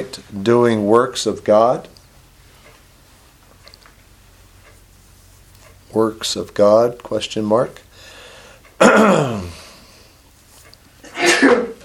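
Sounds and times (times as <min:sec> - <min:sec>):
speech: 0:00.0 - 0:02.0, 0:05.9 - 0:07.8, 0:08.8 - 0:09.6
sneeze: 0:11.1 - 0:11.8.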